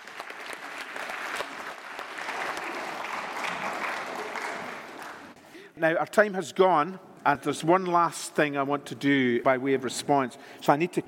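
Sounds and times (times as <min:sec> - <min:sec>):
audience applause: 0:00.0 - 0:05.4
speech: 0:05.8 - 0:11.0.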